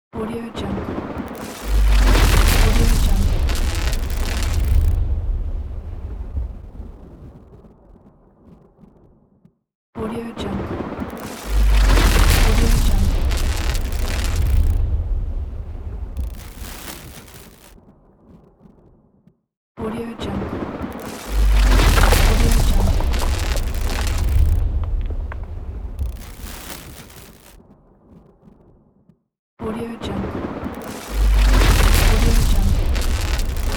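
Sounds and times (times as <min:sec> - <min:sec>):
thunder: 0:00.8 - 0:08.2, 0:10.6 - 0:17.1, 0:20.4 - 0:27.2, 0:30.2 - 0:33.7.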